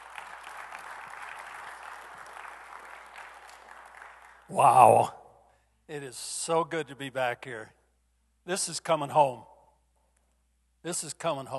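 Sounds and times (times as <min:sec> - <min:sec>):
audience applause: 0:00.0 - 0:05.0
speech: 0:04.5 - 0:05.2, 0:05.9 - 0:07.8, 0:08.5 - 0:09.5, 0:10.8 - 0:11.5.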